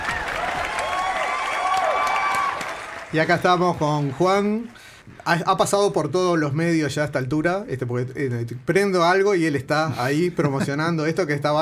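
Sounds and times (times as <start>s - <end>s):
applause: 0.0s - 4.9s
speech: 3.1s - 11.6s.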